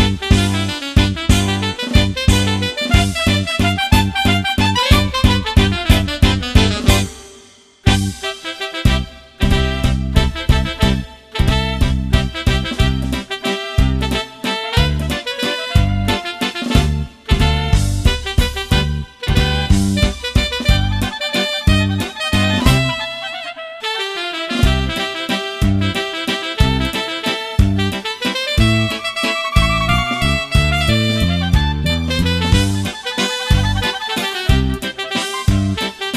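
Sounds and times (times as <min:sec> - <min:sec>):
saxophone playing ballo liscio polka and waltz: 0:00.0 - 0:36.1.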